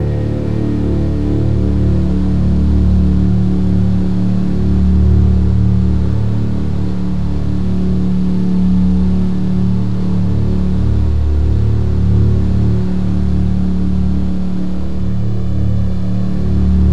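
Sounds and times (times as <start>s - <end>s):
cello: 0.0s - 16.9s.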